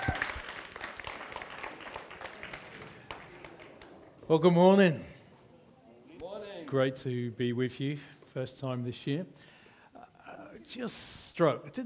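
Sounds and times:
church congregation applause welcoming a guest speaker: 0.0s - 4.1s
speech: 4.3s - 5.1s, 6.7s - 9.5s, 10.7s - 11.8s.

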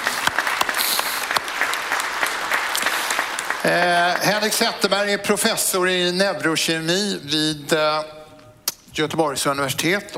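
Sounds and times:
audience applause: 0.0s - 4.6s
speech: 3.6s - 8.2s, 9.0s - 10.1s.

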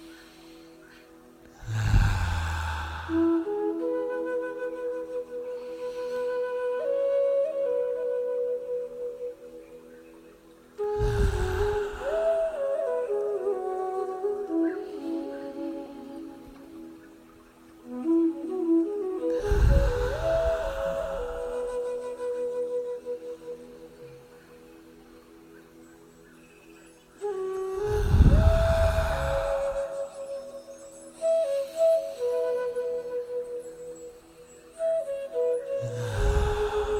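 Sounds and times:
soft sustained melodic music bed: 0.0s - 36.9s
deep slow breathing in a morning breathing exercise: 0.2s - 3.7s, 11.0s - 12.6s, 19.3s - 21.6s, 27.8s - 30.3s, 35.8s - 36.9s.

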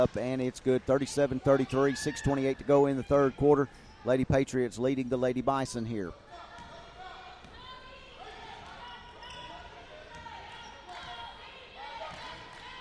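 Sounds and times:
speech: 0.0s - 6.5s
crowd noise: 0.0s - 12.8s
basketball dribbled on the court during a women's game: 6.3s - 11.3s, 12.0s - 12.8s.

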